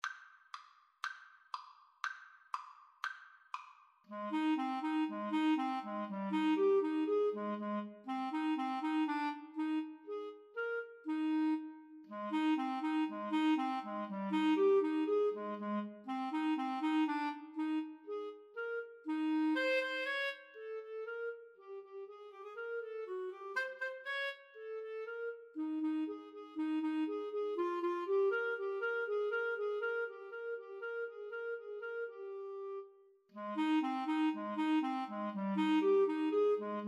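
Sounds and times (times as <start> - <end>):
clarinet duet: 4.1 - 36.8.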